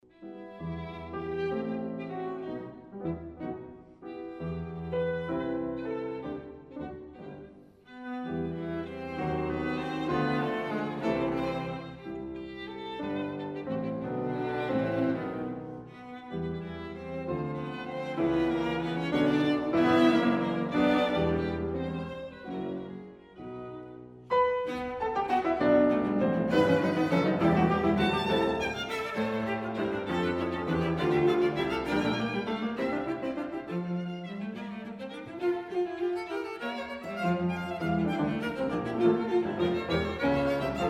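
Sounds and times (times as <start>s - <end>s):
piano quartet: 0.0s - 40.8s.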